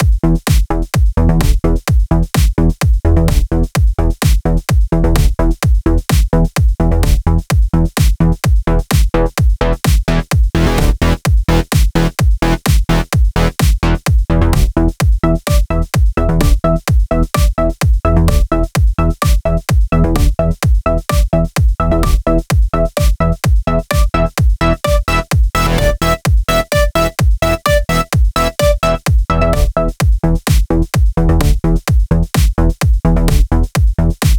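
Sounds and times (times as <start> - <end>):
bass: 0.0 - 34.3.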